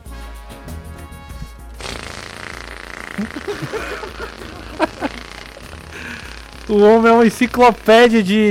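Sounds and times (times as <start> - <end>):
voice imitating a small moped engine: 1.8 - 8.5
laughter: 3.1 - 6.4
speech: 3.2 - 5.2, 6.0 - 8.5.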